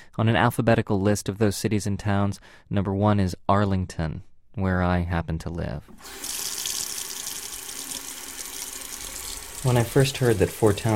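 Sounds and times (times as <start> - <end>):
speech: 0.2 - 6.5, 9.6 - 10.9
water running from a faucet: 5.9 - 10.9.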